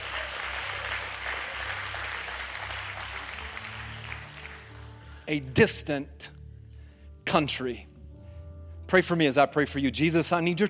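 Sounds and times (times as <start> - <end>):
audience applause: 0.0 - 5.3
speech: 5.3 - 6.4, 7.3 - 7.9, 8.9 - 10.6.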